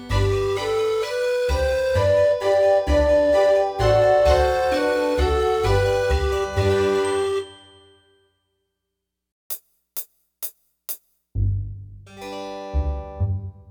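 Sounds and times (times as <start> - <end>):
ascending scale: 0.0 - 7.6.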